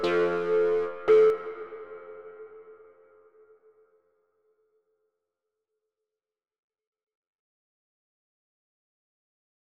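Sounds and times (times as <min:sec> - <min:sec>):
MS-20 synthesizer with wet HaloVerb hall reverb: 0:00.0 - 0:03.6.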